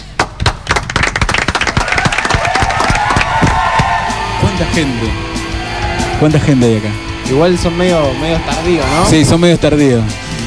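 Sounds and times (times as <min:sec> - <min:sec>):
studio audience applause: 0:00.2 - 0:06.3
audience whooping: 0:01.6 - 0:09.3
speech: 0:04.6 - 0:05.3, 0:06.2 - 0:10.2.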